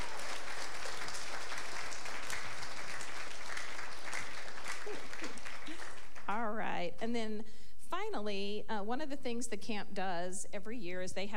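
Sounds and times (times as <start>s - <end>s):
audience applause: 0.0s - 6.3s
speech: 6.8s - 11.3s.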